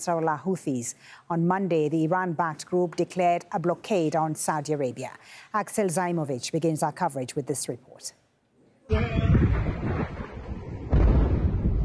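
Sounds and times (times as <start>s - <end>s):
speech: 0.0s - 8.2s, 8.9s - 9.4s
wind-like noise: 8.9s - 11.8s
explosions from airstrikes: 9.0s - 11.8s.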